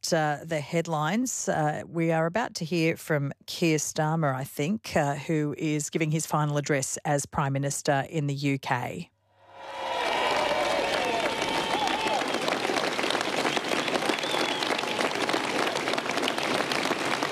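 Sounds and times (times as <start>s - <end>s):
speech: 0.1s - 9.1s
large crowd outside 10 Downing Street in London: 9.4s - 17.3s.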